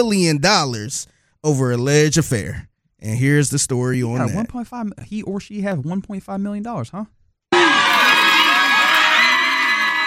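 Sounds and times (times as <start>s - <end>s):
speech: 0.0s - 7.8s
crowd of supporters cheering after court adjourned in a civil case: 7.5s - 10.0s.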